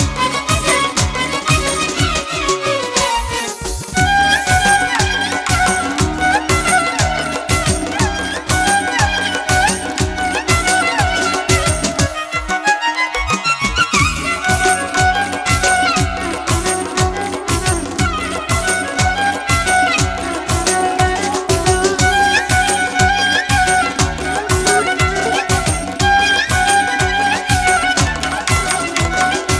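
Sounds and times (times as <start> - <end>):
flute: 0.0 - 29.5
violin: 0.0 - 29.5.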